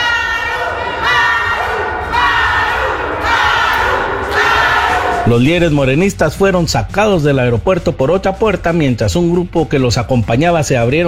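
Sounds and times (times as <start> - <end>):
protesters shouting at airport: 0.0 - 5.4
speech: 5.3 - 11.0.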